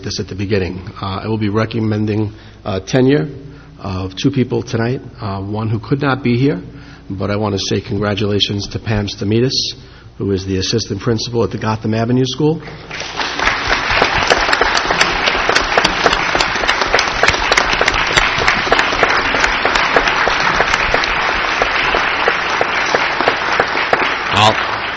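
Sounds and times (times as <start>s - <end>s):
speech: 0.1s - 13.2s
standing ovation applause at a school board meeting: 12.8s - 24.9s.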